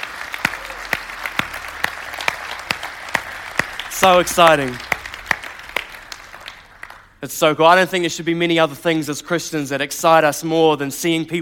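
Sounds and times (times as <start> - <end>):
audience round of applause: 0.0 - 7.2
speech: 4.0 - 4.9, 7.2 - 11.4.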